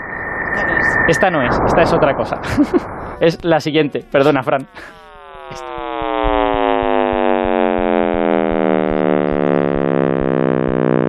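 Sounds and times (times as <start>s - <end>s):
simulated sound of the universe, buzzing drone gliding downward: 0.0s - 11.0s
speech: 0.6s - 5.7s
laughter: 2.3s - 5.0s
low pulsing beat: 2.5s - 11.0s.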